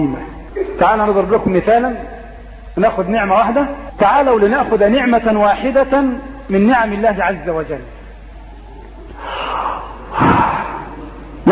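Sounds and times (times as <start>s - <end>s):
speech: 0.0s - 2.1s, 2.8s - 8.0s
person taking a breath in: 9.1s - 11.0s.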